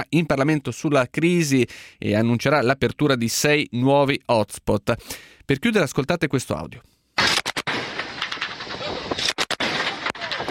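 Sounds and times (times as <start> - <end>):
speech: 0.0 - 6.9
traffickers' rifle gunfire from boat at sea: 7.2 - 10.4.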